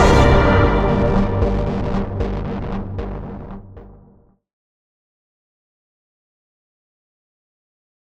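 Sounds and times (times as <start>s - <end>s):
sci-fi fantasy sound: 0.0s - 4.2s.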